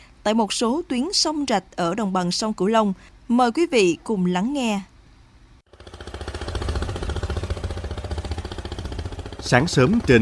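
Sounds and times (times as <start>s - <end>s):
speech: 0.2s - 4.9s, 9.5s - 10.2s
longtail boat engine on a canal: 5.7s - 10.2s.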